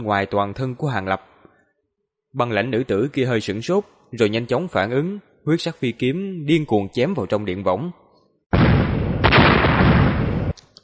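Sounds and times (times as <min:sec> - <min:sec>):
speech: 0:00.0 - 0:01.3, 0:02.3 - 0:08.0
series of explosions: 0:08.5 - 0:10.6.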